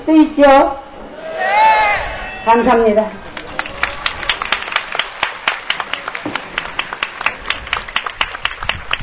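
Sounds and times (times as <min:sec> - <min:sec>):
speech: 0:00.2 - 0:00.8, 0:02.5 - 0:03.2
crowd applauding: 0:03.3 - 0:09.0.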